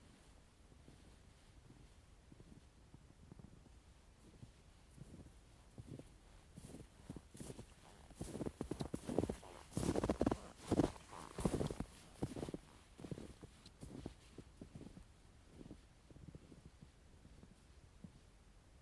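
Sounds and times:
footsteps in snow: 4.9s - 16.3s.

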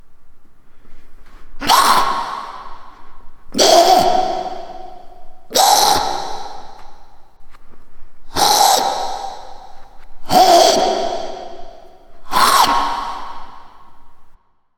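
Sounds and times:
ghoul sound: 1.6s - 7.3s, 8.3s - 14.2s.

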